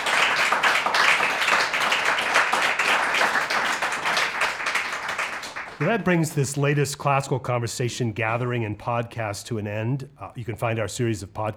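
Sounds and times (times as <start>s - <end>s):
audience applause: 0.0s - 6.4s
speech: 5.8s - 11.5s.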